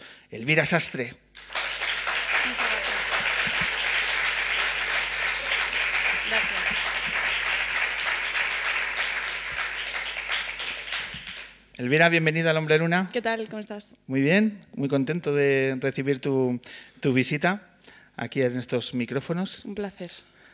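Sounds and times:
speech: 0.3s - 1.5s, 11.8s - 20.3s
audience applause: 1.4s - 11.6s.

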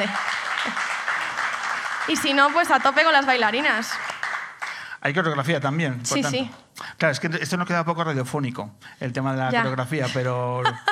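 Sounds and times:
speech: 0.0s - 0.8s, 2.1s - 4.1s, 5.0s - 10.9s
applause for the guitarist: 0.0s - 5.3s
laughter: 9.5s - 10.9s.

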